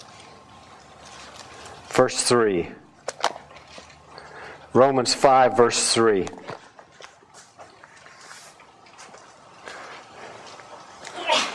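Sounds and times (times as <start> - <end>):
rustling and shuffling: 0.0 - 2.0, 3.0 - 4.8, 6.2 - 11.5
speech: 2.0 - 2.8, 4.7 - 6.5
sneeze: 11.2 - 11.5.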